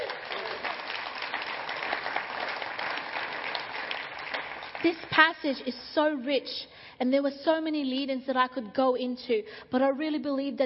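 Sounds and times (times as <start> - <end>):
audience clapping: 0.0 - 5.7
speech: 4.8 - 10.6.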